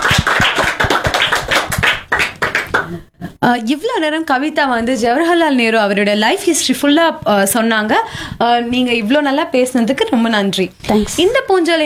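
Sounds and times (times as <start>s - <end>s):
group of people applauding: 0.0s - 3.0s
speech: 3.4s - 11.8s.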